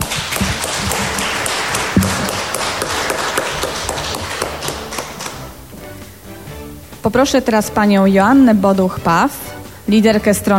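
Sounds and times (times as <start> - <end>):
audience applause: 0.0 - 5.6
speech: 7.0 - 10.5.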